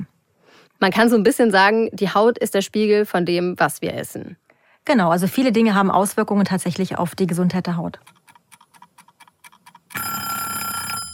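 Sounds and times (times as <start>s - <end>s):
speech: 0.8s - 8.2s
unpleasant alarm clock ringing: 9.9s - 11.1s.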